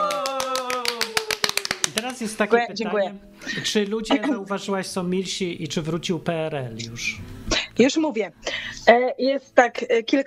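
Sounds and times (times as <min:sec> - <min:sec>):
applause: 0:00.0 - 0:02.5
speech: 0:02.2 - 0:10.2.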